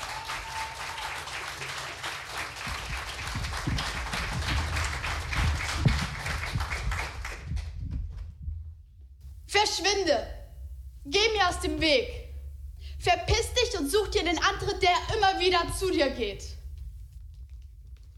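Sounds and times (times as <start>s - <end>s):
whoops and cheers: 0.0s - 1.5s
audience applause: 0.0s - 7.8s
speech: 9.8s - 10.4s, 11.1s - 12.2s, 13.0s - 16.5s.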